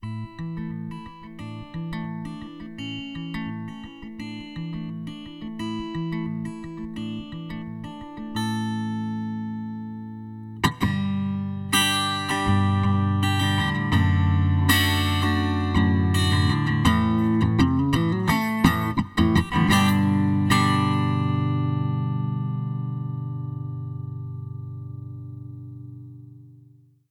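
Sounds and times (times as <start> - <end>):
acoustic music: 0.0 - 27.0.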